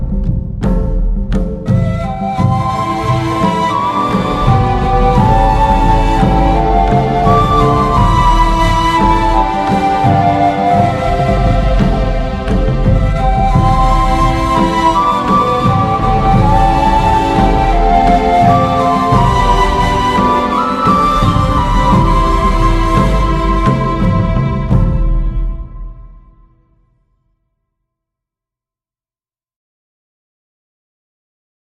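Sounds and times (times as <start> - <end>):
flute theme: 0.2 - 26.9.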